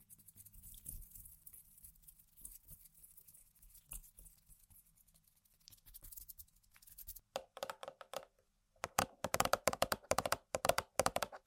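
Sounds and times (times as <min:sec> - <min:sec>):
tapping and scraping on objects: 0:07.3 - 0:11.4.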